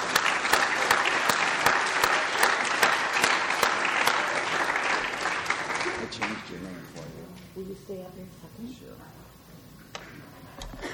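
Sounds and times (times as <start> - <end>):
warm audience applause welcoming a speaker at a recovery step-series session: 0.0 - 6.8.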